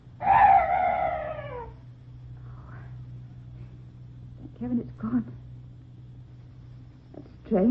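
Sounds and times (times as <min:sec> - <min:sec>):
faint low hum: 0:00.0 - 0:07.6
strange night bird giving a drawn-out wailing call: 0:00.2 - 0:01.8
speech: 0:04.6 - 0:05.5.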